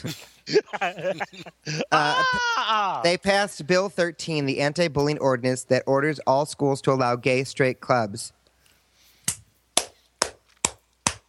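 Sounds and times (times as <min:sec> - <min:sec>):
laughter: 0:00.0 - 0:03.1
speech: 0:00.0 - 0:08.4
hand clapping: 0:09.3 - 0:11.2.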